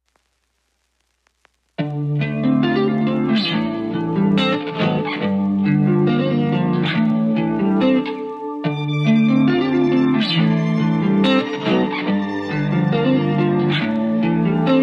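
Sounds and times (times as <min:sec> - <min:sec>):
instrumental music: 0:01.8 - 0:14.8.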